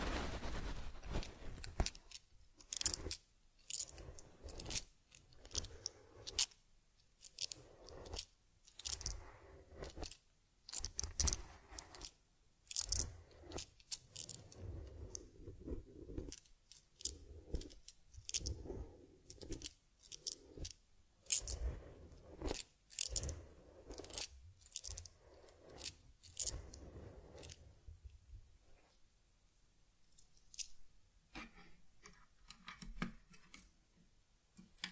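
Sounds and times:
teddy bear brushing and combing strokes: 0.0 - 6.6, 7.2 - 27.9.

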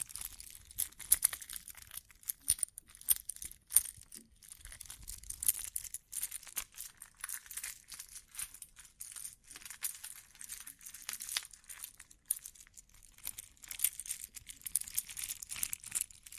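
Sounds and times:
bright crinkling and tinkling: 0.0 - 16.3.

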